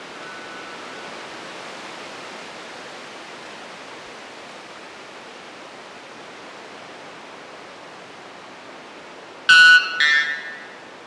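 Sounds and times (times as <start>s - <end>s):
white bellbird calling: 0.1s - 1.2s, 9.5s - 10.9s.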